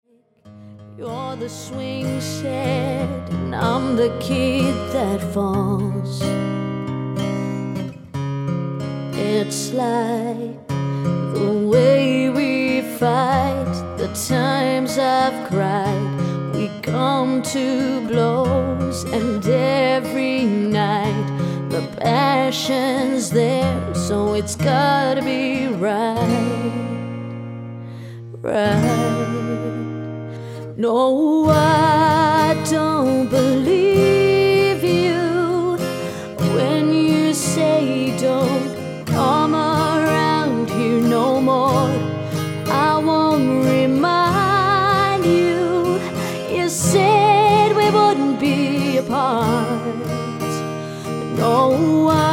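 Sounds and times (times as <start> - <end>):
acoustic music: 0.3 - 52.3.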